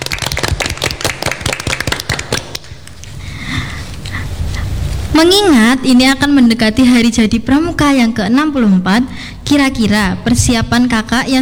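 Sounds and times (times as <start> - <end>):
audience clapping: 0.0 - 5.1
low steady murmur: 0.0 - 11.4
speech: 5.2 - 11.4.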